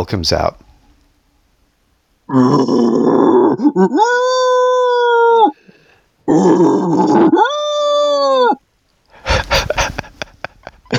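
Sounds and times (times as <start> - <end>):
speech: 0.0 - 0.6, 2.3 - 4.5, 6.3 - 7.6
person imitating a bear growl: 2.3 - 5.6, 6.2 - 8.6
laughter: 9.2 - 10.9.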